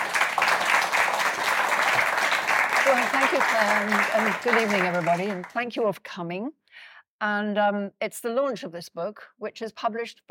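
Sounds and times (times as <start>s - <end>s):
audience applause: 0.0s - 5.6s
speech: 2.9s - 10.2s.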